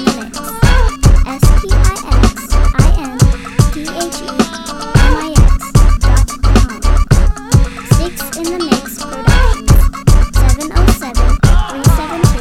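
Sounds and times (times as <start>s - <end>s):
uptempo music: 0.0s - 12.4s.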